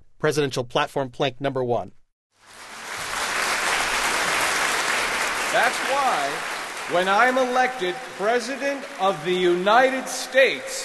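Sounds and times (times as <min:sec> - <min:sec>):
speech: 0:00.2 - 0:02.0, 0:05.5 - 0:10.8
applause sound effect: 0:02.3 - 0:10.8.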